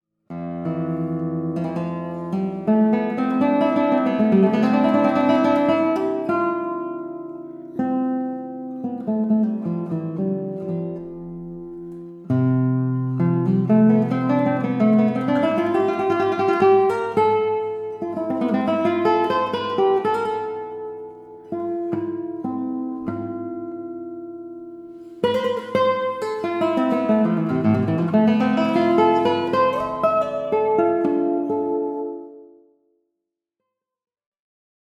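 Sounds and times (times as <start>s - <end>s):
postlude: 0.3s - 32.5s.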